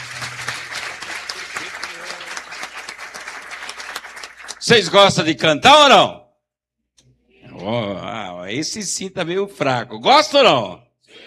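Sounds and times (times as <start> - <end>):
crowd applause: 0.0 - 5.2
speech: 4.7 - 6.2, 7.7 - 10.9.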